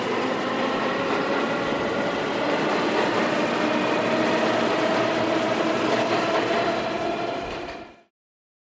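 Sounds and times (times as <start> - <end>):
subway car exiting station: 0.0 - 8.1.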